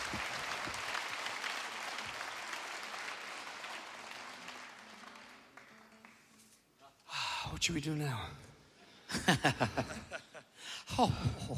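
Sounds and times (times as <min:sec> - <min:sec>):
audience applause: 0:00.0 - 0:06.4
speech: 0:07.6 - 0:08.5, 0:09.3 - 0:10.3, 0:10.9 - 0:11.5
laughter: 0:09.0 - 0:11.5.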